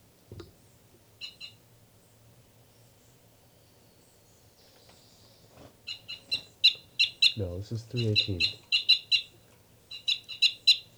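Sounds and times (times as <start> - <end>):
two birds calling with sharp high-pitched chirps: 5.9 - 10.9
speech: 7.4 - 8.7.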